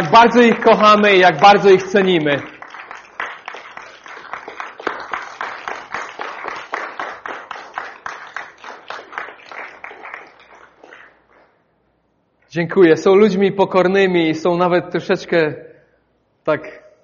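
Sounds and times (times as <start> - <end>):
speech: 0.0 - 2.5, 12.5 - 15.7, 16.5 - 16.8
audience applause: 0.0 - 11.4.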